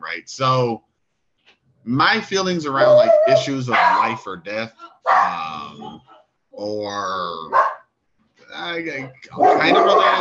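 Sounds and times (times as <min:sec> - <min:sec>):
speech: 0:00.2 - 0:00.9, 0:01.8 - 0:07.7, 0:08.5 - 0:10.1
dog yelping: 0:02.8 - 0:04.2, 0:04.9 - 0:06.3, 0:07.5 - 0:07.8, 0:09.4 - 0:10.1
dogs barking and whining excitedly as a visitor arrives: 0:02.8 - 0:04.2, 0:04.8 - 0:06.4, 0:07.5 - 0:07.9, 0:09.0 - 0:10.1.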